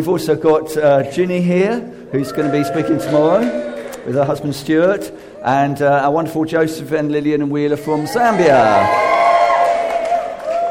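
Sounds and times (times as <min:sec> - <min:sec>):
speech: 0:00.0 - 0:09.1
audience cheering: 0:02.1 - 0:04.6, 0:07.9 - 0:10.6.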